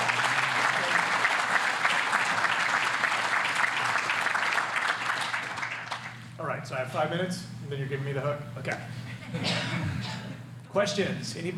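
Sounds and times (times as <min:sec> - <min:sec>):
audience applause: 0:00.0 - 0:06.2
speech: 0:06.6 - 0:10.2, 0:10.8 - 0:11.5.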